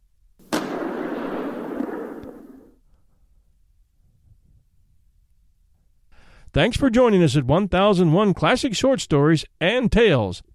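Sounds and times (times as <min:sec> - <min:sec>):
rifle shot: 0:00.4 - 0:02.8
speech: 0:06.6 - 0:10.5.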